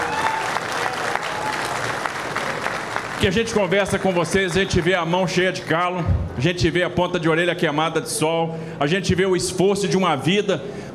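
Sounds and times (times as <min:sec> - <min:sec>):
crowd applause: 0:00.0 - 0:05.8
speech: 0:03.2 - 0:10.9.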